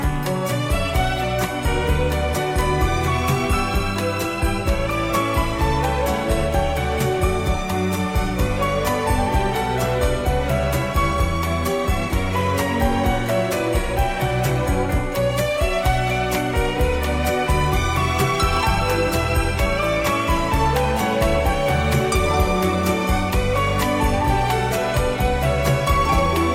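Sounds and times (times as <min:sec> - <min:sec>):
toccata melody: 0:00.0 - 0:26.5.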